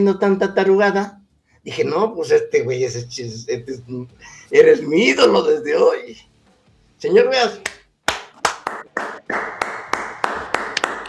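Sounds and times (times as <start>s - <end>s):
speech: 0.0s - 6.3s, 7.0s - 7.7s
rhythmic hand clapping: 7.6s - 11.0s
applause: 7.7s - 11.0s.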